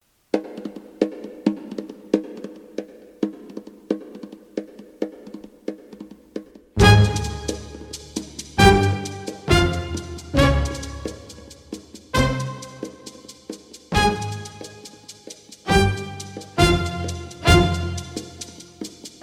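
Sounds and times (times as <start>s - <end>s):
Brazilian tango dance music: 6.8s - 8.0s, 8.6s - 13.0s, 13.9s - 14.9s, 15.7s - 19.2s.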